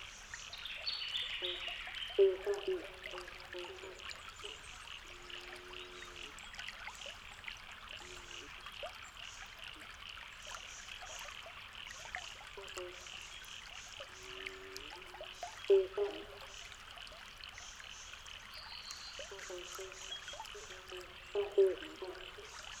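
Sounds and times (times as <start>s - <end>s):
frogs: 0.0s - 22.7s
cuckoos: 1.4s - 6.4s, 14.2s - 16.6s, 19.2s - 22.7s.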